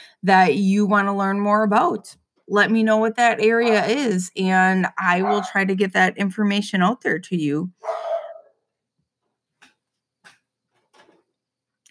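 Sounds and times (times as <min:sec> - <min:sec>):
speech: 0:00.2 - 0:08.0
dogs barking: 0:05.2 - 0:05.5, 0:07.8 - 0:08.6.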